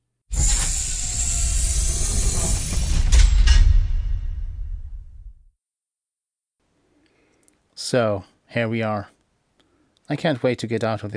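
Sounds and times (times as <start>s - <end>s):
hiss of pressure door as pressures equalize: 0.3s - 3.6s
speech: 7.9s - 9.2s, 10.1s - 11.1s.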